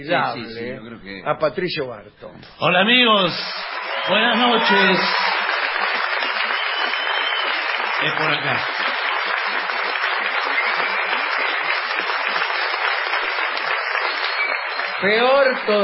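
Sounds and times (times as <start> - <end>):
speech: 0.0 - 5.3, 8.0 - 8.8, 15.0 - 15.8
audience ovation and applause: 3.4 - 15.8.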